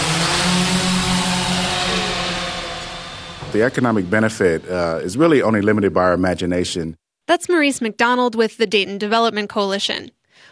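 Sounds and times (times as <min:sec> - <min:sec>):
quadcopter drone hovering overhead: 0:00.0 - 0:04.9
speech: 0:03.6 - 0:10.4.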